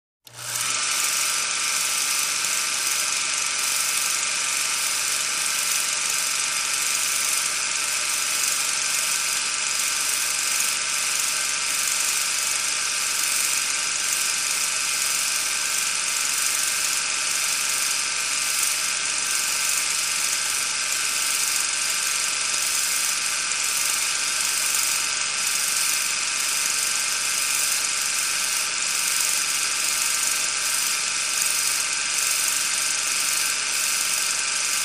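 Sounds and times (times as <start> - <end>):
16mm film projector starting: 0.2 - 34.8.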